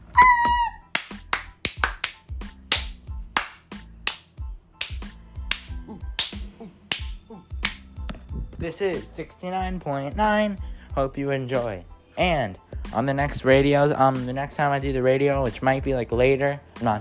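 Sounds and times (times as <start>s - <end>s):
sharp crisp claps or snaps: 0.2s - 8.2s
speech: 8.6s - 16.9s.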